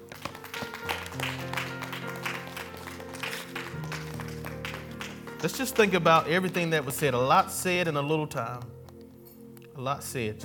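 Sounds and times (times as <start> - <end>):
audience clapping: 0.0 - 7.3
sustained organ or keyboard chords: 0.0 - 10.4
speech: 5.4 - 8.8, 9.8 - 10.4.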